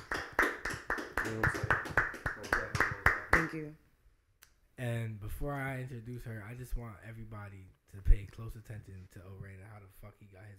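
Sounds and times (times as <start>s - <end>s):
clapping: 0.0s - 3.6s
speech: 1.2s - 1.8s, 3.4s - 3.8s, 4.8s - 10.5s.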